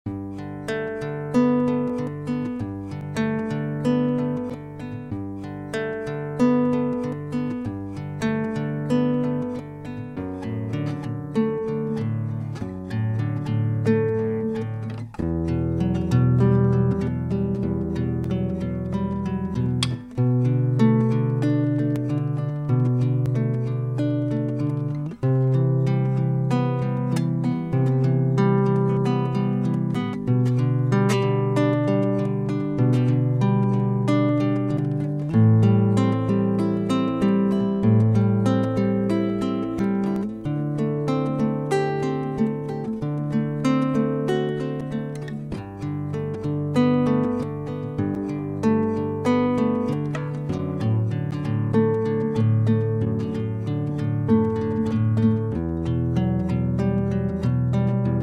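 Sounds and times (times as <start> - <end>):
instrumental backing track without melody: 0.1 - 58.2.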